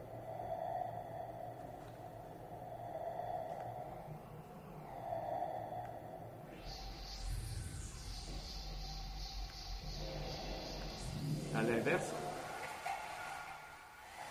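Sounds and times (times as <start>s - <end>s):
steady low drone: 0.0s - 14.3s
shrill electroacoustic sound transposed very high at 14 times speed: 3.0s - 14.3s
speech: 11.6s - 12.2s.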